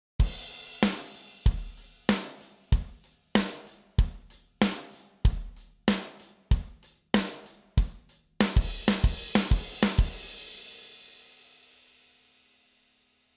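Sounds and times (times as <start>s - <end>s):
drum: 0.2s - 10.8s.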